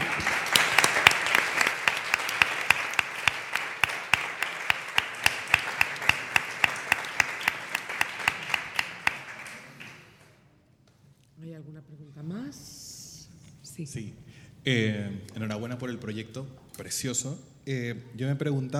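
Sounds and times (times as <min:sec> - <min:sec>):
audience applause: 0:00.0 - 0:10.3
speech: 0:13.8 - 0:18.7.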